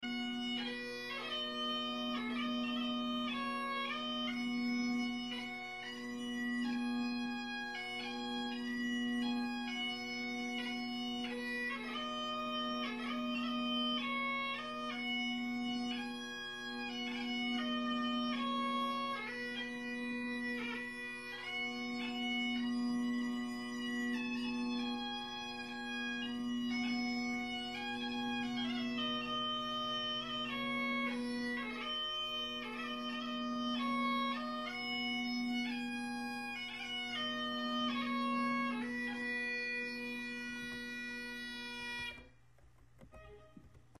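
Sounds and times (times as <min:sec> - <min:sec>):
bagpiper playing bagpipes: 0:00.0 - 0:42.4.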